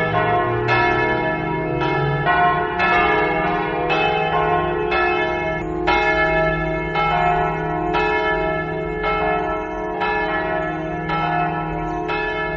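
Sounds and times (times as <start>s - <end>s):
church bells ringing: 0.0s - 12.5s.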